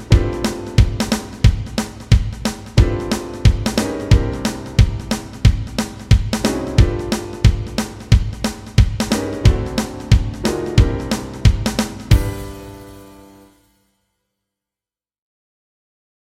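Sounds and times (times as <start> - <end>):
walking bass backing track: 0.0 - 12.6.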